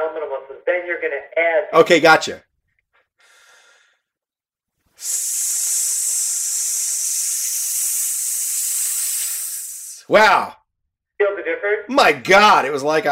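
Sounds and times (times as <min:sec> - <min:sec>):
speech: 0:00.4 - 0:02.5, 0:05.0 - 0:05.5, 0:10.1 - 0:10.6, 0:11.6 - 0:13.1
breathy inhale: 0:03.2 - 0:04.2, 0:05.0 - 0:10.0
forceful hissing breath exercise through the teeth: 0:04.9 - 0:10.1.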